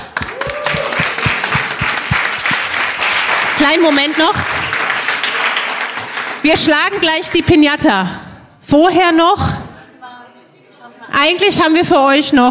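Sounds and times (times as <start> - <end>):
audience applause: 0.0 - 6.9
speech: 3.6 - 4.6, 6.4 - 9.5, 11.2 - 12.4.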